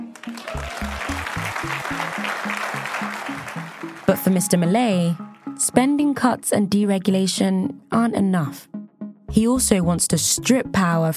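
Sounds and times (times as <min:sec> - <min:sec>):
crowd enthusiastic applause: 0:00.0 - 0:04.3
speech: 0:04.3 - 0:08.7, 0:09.3 - 0:11.1.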